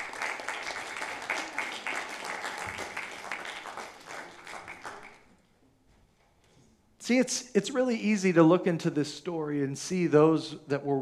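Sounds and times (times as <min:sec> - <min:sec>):
audience applause: 0:00.0 - 0:05.3
speech: 0:07.1 - 0:11.0.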